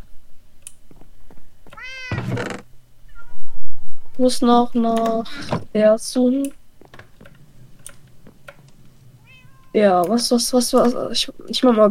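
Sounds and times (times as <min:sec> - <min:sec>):
cat meowing: 0:01.8 - 0:02.5, 0:03.1 - 0:04.2, 0:09.2 - 0:09.8
speech: 0:04.2 - 0:06.6, 0:09.8 - 0:11.8.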